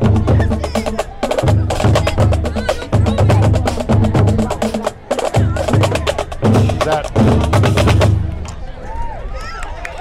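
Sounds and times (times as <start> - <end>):
drumline playing: 0.0 - 8.7.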